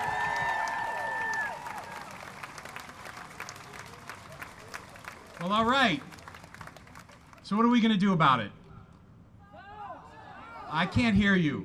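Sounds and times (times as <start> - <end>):
audience applause for speakers: 0.0 - 7.4
speech: 5.4 - 6.2, 7.5 - 8.6, 10.7 - 11.6.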